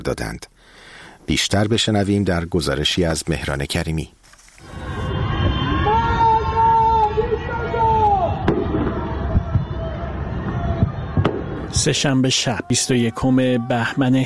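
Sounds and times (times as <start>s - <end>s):
speech: 0.0s - 4.8s, 11.8s - 14.2s
anti-government shouts from windows at night: 4.6s - 14.2s
firework pops and bangs: 8.4s - 11.9s.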